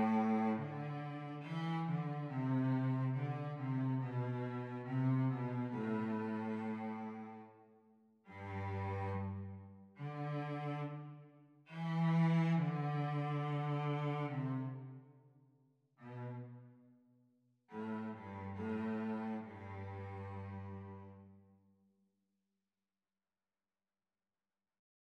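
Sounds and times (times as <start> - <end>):
cello duet: 0.0 - 7.6, 8.3 - 15.0, 16.0 - 16.8, 17.7 - 21.4.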